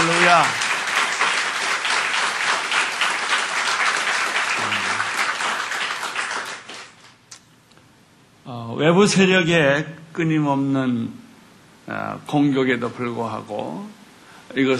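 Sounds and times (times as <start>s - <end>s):
audience applause: 0.0s - 7.2s
speech: 0.3s - 0.6s, 8.8s - 11.2s, 11.9s - 14.7s.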